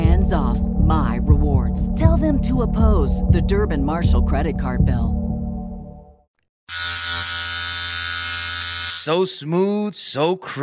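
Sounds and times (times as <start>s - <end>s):
speech: 0.3s - 5.2s, 6.7s - 7.0s, 9.0s - 10.6s
electric shaver shaving a face: 6.7s - 9.1s.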